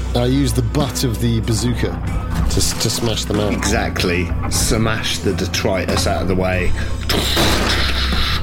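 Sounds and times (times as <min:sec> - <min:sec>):
speech: 0:00.1 - 0:08.3
loud dense rumbling wash of noise: 0:01.8 - 0:07.2
locks clanking as they engage: 0:01.9 - 0:08.0
heavy iron doors slamming shut: 0:02.1 - 0:08.3.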